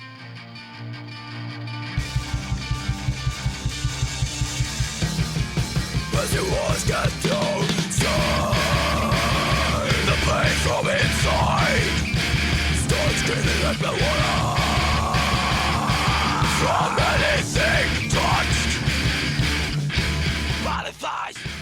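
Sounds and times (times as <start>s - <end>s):
dense distorted guitars: 0.0s - 21.5s
steady driving drum beat: 2.0s - 21.5s
loud strained screamy emo vocals: 6.1s - 19.5s, 20.5s - 21.5s.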